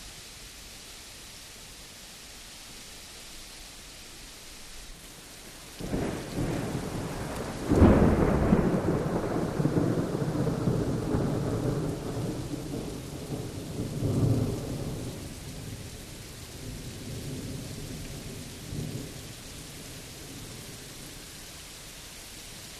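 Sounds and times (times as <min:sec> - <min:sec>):
distant medium thunder: 0:05.8 - 0:15.2.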